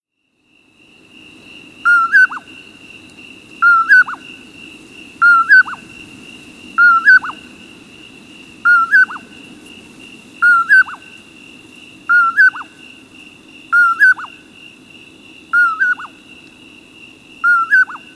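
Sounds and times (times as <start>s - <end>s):
Common Poorwill calling a whistled two-part phrase: 1.9s - 2.4s, 3.6s - 4.2s, 5.2s - 5.8s, 6.8s - 7.4s, 8.7s - 9.3s, 10.4s - 11.0s, 12.1s - 12.7s, 13.8s - 14.4s, 15.6s - 16.2s, 17.5s - 18.1s.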